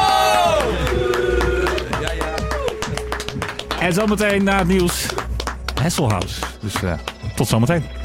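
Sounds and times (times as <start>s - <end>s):
cheering: 0.0s - 3.8s
applause: 0.3s - 7.6s
speech: 3.8s - 5.2s, 5.8s - 8.0s.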